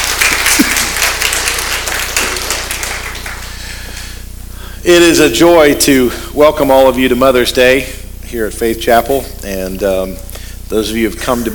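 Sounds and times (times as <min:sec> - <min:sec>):
audience applause: 0:00.0 - 0:04.1
speech: 0:04.9 - 0:11.5.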